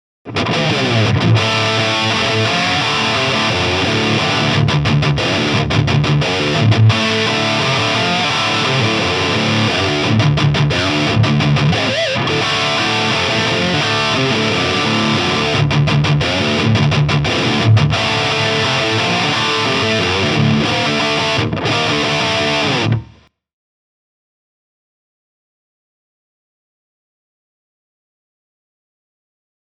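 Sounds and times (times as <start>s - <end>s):
Hagstrom Super Swede electric guitar heavy lead: 0.3s - 23.2s.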